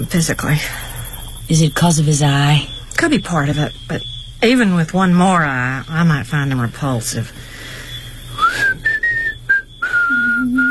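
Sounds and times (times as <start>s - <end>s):
speech: 0.0s - 0.9s, 1.5s - 7.5s
person whistling a tune: 8.4s - 10.6s.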